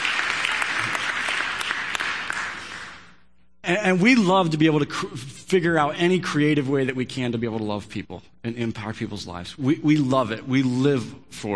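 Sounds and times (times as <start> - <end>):
crowd applauding: 0.0 - 3.1
speech: 3.7 - 11.5.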